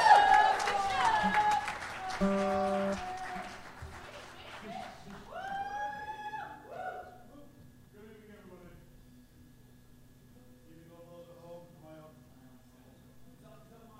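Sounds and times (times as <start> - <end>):
audience applause: 0.0 - 6.2.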